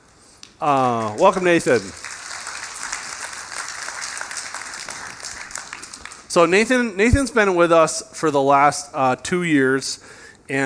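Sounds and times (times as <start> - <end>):
speech: 0.6 - 2.0, 6.3 - 10.6
half-hearted audience clapping: 0.6 - 6.6.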